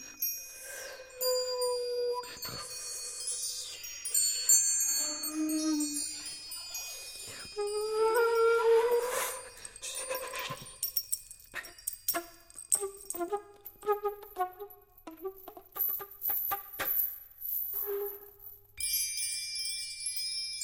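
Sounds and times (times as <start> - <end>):
percussion: 0.0 - 20.6
flute: 1.2 - 2.8, 5.0 - 6.2, 7.6 - 10.5, 11.6 - 15.4.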